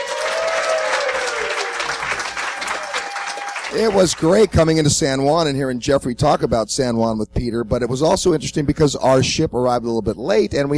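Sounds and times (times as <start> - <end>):
audience applause: 0.0 - 4.8
speech: 3.7 - 10.7.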